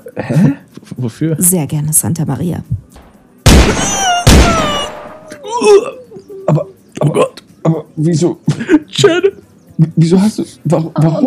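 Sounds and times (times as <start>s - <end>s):
speech: 0.2s - 3.0s, 5.6s - 11.2s
gunshots from a loaded weapon: 3.0s - 5.3s.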